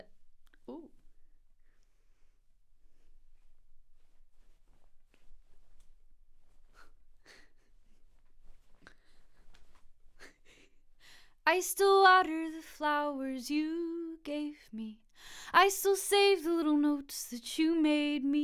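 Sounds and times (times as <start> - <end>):
vocals: 0.7 - 1.0, 10.5 - 18.4.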